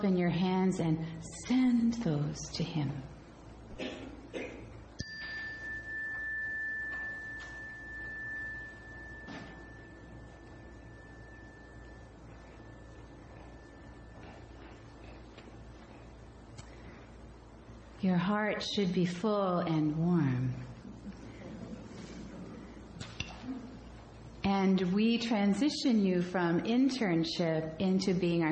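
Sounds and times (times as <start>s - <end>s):
speech: 0.0s - 3.2s, 18.0s - 20.7s, 24.6s - 28.5s
faint hiss: 0.0s - 28.5s
ringing chime: 5.0s - 15.6s.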